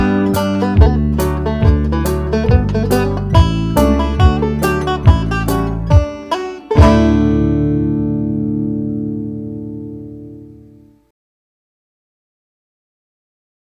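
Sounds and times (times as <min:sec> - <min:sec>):
banjo tune: 0:00.0 - 0:10.9.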